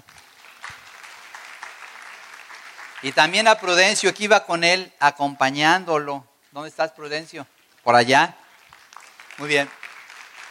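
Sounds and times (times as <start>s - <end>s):
audience applause: 0.0s - 4.0s, 8.4s - 10.4s
speech: 3.0s - 8.4s, 9.4s - 9.8s.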